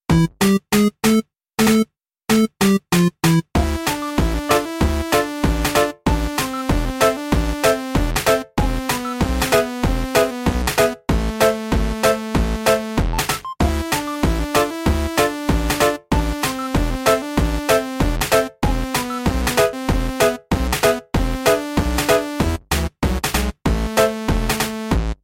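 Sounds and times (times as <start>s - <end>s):
8-bit music: 0.1s - 25.2s.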